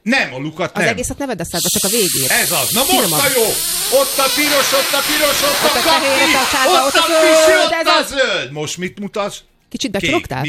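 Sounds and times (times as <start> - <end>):
speech: 0.0 - 10.4
person blowing hard into a breath-measuring device: 1.9 - 7.7.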